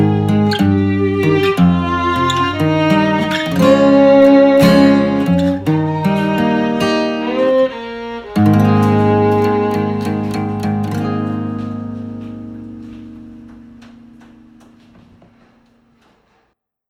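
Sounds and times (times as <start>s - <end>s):
violin playing: 0.0s - 11.9s
guitar playing: 0.0s - 15.1s.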